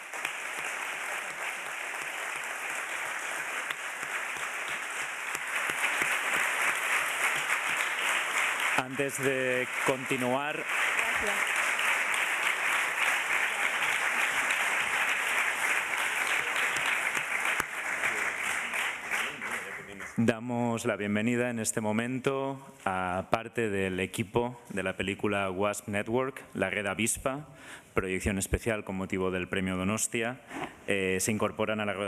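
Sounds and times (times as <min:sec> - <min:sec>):
audience applause at press conference: 0:00.0 - 0:20.2
speech: 0:08.8 - 0:11.5, 0:20.2 - 0:32.0.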